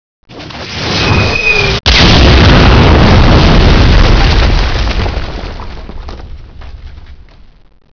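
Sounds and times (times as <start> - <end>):
mortar firing: 1.9 - 7.3.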